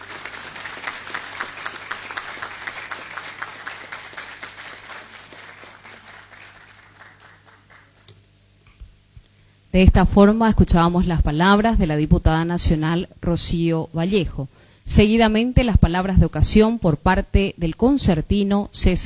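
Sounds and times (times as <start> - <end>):
audience applause for an orchestra: 0.0 - 8.2
speech: 9.8 - 19.0.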